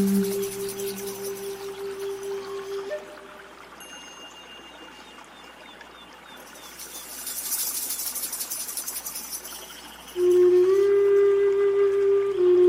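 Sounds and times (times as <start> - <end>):
low steady bowl-like ringing tone: 0.0 - 5.8
gentle zen music: 0.0 - 7.2, 9.4 - 12.6
faint trickling: 0.0 - 12.4
soft natural wash: 0.0 - 12.6.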